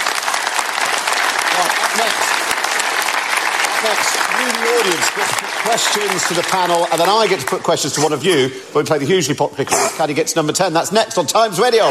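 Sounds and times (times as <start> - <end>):
audience applause: 0.0 - 8.3
speech: 1.6 - 2.5, 3.8 - 11.8.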